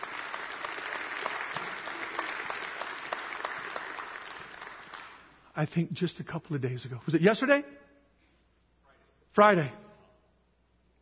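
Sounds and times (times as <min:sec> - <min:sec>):
congregation clapping in a church service celebrating a new grandchild: 0:00.0 - 0:05.8
speech: 0:05.6 - 0:07.8, 0:09.4 - 0:09.8.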